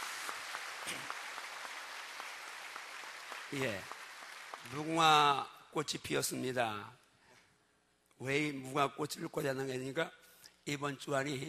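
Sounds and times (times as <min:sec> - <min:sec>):
audience applause: 0:00.0 - 0:05.3
speech: 0:00.9 - 0:01.2, 0:03.5 - 0:04.0, 0:04.6 - 0:07.0, 0:08.2 - 0:11.4.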